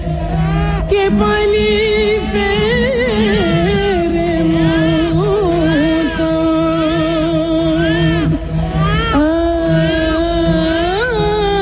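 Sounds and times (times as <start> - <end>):
baby crying: 0.1 - 11.6
speech: 0.9 - 2.6.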